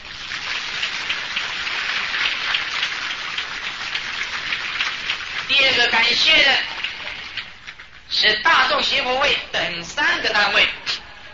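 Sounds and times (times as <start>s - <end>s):
audience applause: 0.2s - 5.5s
speech: 5.5s - 6.7s, 8.2s - 10.8s.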